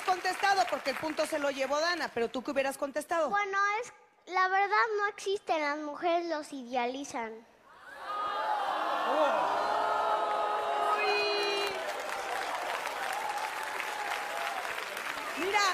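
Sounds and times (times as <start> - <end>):
crowd applause: 0.0 - 1.7, 7.9 - 15.7
speech: 0.1 - 7.5, 9.1 - 9.8, 15.4 - 15.7
whoops and cheers: 7.8 - 15.4.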